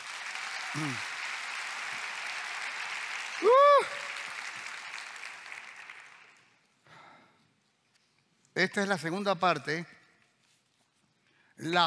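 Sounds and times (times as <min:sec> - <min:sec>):
audience applause: 0:00.0 - 0:06.6
speech: 0:00.7 - 0:01.1, 0:08.6 - 0:10.0, 0:11.6 - 0:11.8.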